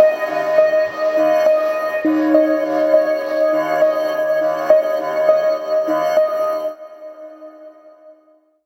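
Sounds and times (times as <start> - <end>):
chillout electronic music: 0.0 - 6.9.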